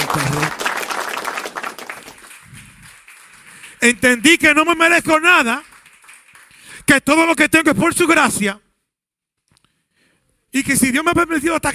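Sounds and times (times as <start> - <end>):
audience applause: 0.0 - 6.9
speech: 3.8 - 5.7, 6.9 - 8.6, 10.5 - 11.7.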